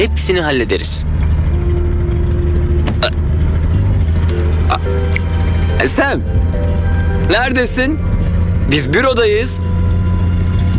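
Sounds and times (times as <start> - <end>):
speech: 0.0 - 1.3, 5.8 - 6.5, 7.3 - 8.1, 8.7 - 9.7
car engine rumbling: 0.0 - 10.7.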